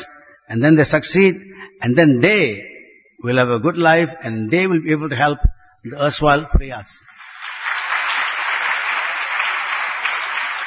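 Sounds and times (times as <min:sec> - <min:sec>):
speech: 0:00.5 - 0:07.1
audience clapping: 0:07.1 - 0:10.6.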